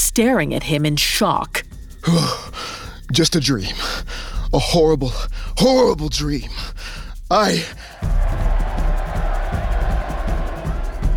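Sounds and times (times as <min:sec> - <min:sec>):
speech: 0:00.1 - 0:08.2
breathy vocal gasp: 0:02.0 - 0:03.1, 0:03.8 - 0:04.5
crowd cheering and roaring: 0:08.0 - 0:11.1.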